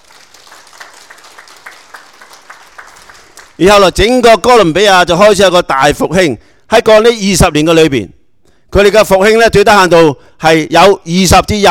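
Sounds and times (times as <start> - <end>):
audience applause: 0.0 - 3.6
speech: 3.6 - 11.6.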